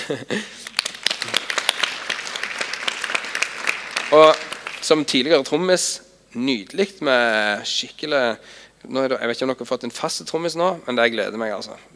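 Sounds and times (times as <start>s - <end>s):
speech: 0.1s - 1.4s, 4.1s - 11.9s
audience applause: 0.6s - 4.9s.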